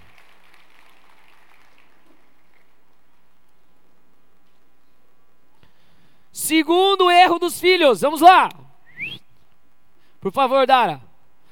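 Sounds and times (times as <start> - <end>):
audience applause: 0.0 - 3.2
speech: 6.5 - 8.6, 10.2 - 11.1.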